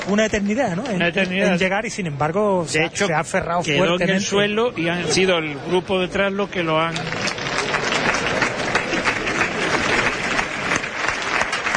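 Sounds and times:
speech: 0.1 - 7.3
crowd ovation at a bullfight: 6.7 - 11.7.

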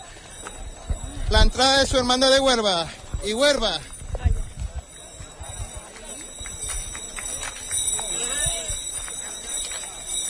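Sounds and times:
busy procession din of voices: 0.0 - 10.2
mule hooves clopping along a hard street in a procession: 0.0 - 10.2
speech: 1.3 - 3.9.

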